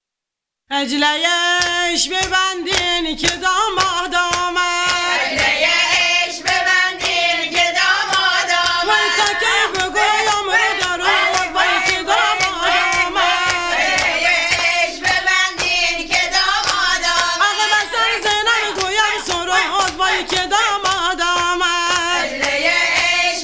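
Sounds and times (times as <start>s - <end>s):
women's Azadari mourning lament: 0.7s - 23.4s.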